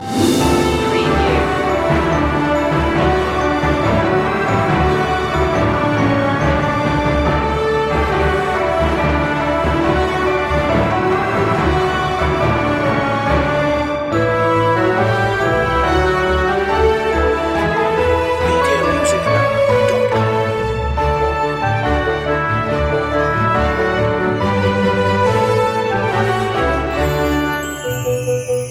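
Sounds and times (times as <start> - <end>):
orchestral loop ending: 0.0 - 28.6.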